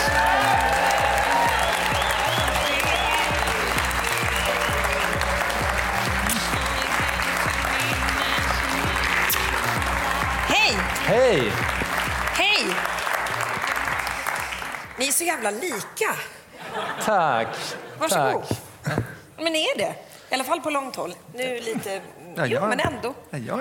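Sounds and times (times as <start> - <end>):
audience applause: 0.0 - 15.3
speech: 15.4 - 16.4, 17.0 - 23.5
laughter: 16.5 - 18.0.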